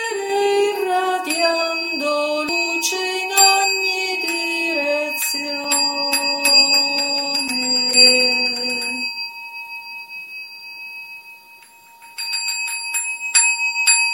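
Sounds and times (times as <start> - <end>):
morning song: 0.0 - 9.1
bells ringing: 0.0 - 14.1.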